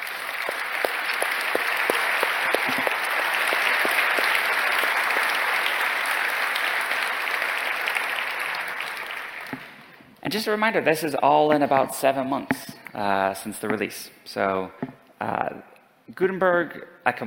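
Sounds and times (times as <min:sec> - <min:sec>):
audience applause: 0:00.0 - 0:10.0
speech: 0:10.3 - 0:17.2.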